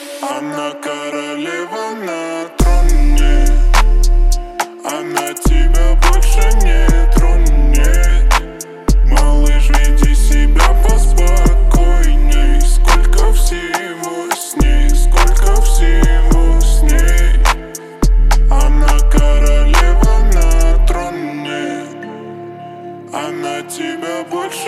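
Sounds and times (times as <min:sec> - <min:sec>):
37-39-41 Hz low bass tone: 0:02.6 - 0:04.6, 0:05.5 - 0:13.7, 0:14.6 - 0:21.1.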